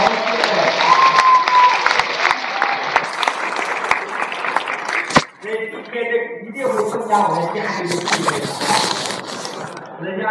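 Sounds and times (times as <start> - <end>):
audience applause: 0.0 - 5.4
speech: 7.1 - 9.0.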